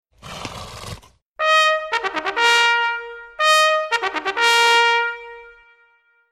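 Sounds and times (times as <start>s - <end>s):
bugle call: 1.4s - 5.7s.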